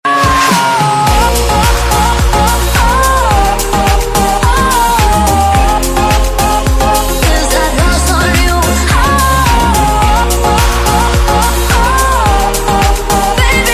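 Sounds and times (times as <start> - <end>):
remix ringtone: 0.0 - 13.7.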